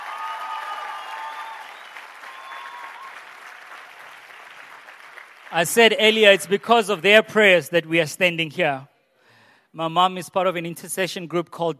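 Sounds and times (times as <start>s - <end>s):
audience applause: 0.0s - 6.1s
speech: 5.5s - 8.9s, 9.8s - 11.7s.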